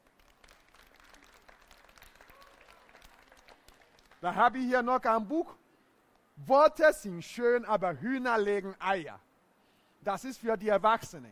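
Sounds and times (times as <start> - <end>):
crowd applauding: 0.0 - 4.4
speech: 4.2 - 5.6, 6.4 - 9.3, 10.0 - 11.3.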